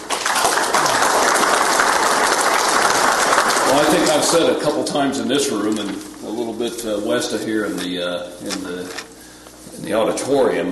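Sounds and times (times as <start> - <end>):
audience applause: 0.0 - 5.1
speech: 3.7 - 9.1, 9.8 - 10.6.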